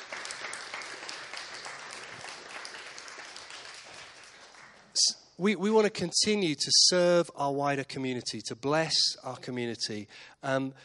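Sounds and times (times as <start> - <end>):
audience applause: 0.0 - 5.0
speech: 5.0 - 10.8.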